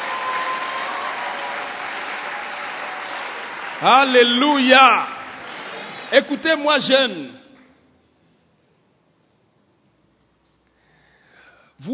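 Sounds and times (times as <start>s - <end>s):
church congregation applauding during a service: 0.0s - 7.8s
speech: 3.8s - 5.1s, 6.1s - 7.4s.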